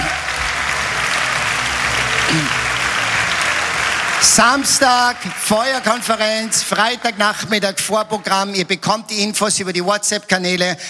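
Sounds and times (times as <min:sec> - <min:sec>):
audience applause: 0:00.0 - 0:08.6
speech: 0:04.2 - 0:10.8.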